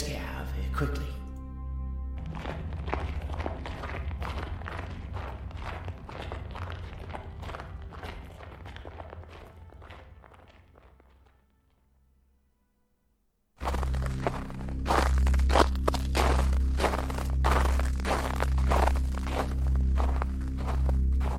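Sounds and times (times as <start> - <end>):
speech: 0.8 - 1.1
footsteps crunching through snow: 2.2 - 11.5, 13.6 - 21.3.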